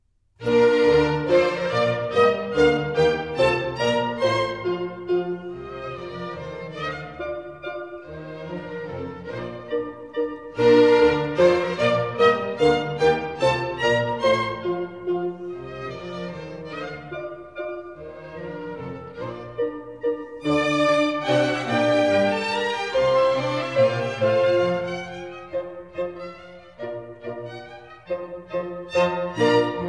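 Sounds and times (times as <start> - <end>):
minuet in B-flat major: 0.4 - 29.8.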